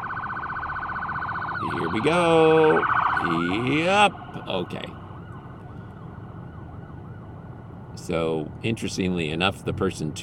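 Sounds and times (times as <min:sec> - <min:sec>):
ambulance siren wailing in traffic: 0:00.0 - 0:08.0
dense low road rumble: 0:00.0 - 0:10.2
speech: 0:01.6 - 0:05.0, 0:08.0 - 0:10.2.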